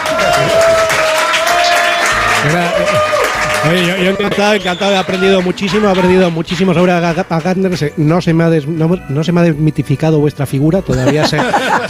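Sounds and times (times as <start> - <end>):
audience ovation applause: 0.0 - 7.4
speech: 2.5 - 11.8
laughter: 10.9 - 11.8.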